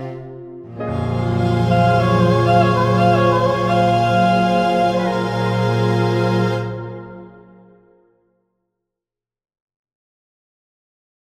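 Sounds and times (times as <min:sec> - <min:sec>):
soprano saxophone: 0:00.3 - 0:08.0.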